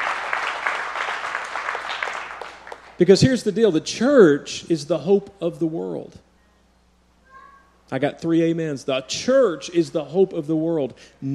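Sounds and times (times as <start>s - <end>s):
crowd audience clapping hands: 0.0s - 3.0s
speech: 3.0s - 6.2s, 7.9s - 11.3s.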